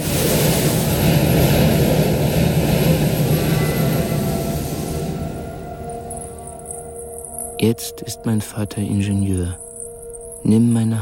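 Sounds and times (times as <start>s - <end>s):
train thundering past: 0.0s - 7.5s
speech: 7.6s - 9.6s, 10.4s - 11.0s.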